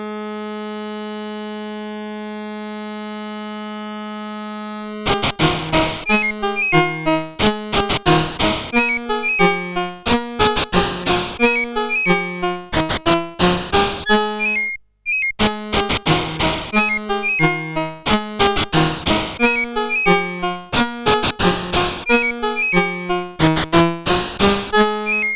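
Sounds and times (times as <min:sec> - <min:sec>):
SID CSG8580R5 chip music: 0:05.1 - 0:25.3.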